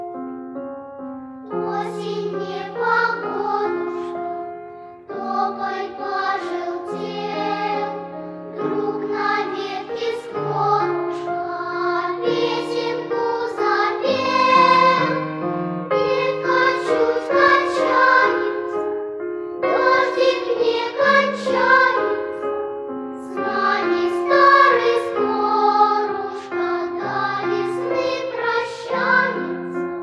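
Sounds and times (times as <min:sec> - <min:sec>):
children's songs about autumn: 0:01.5 - 0:30.0.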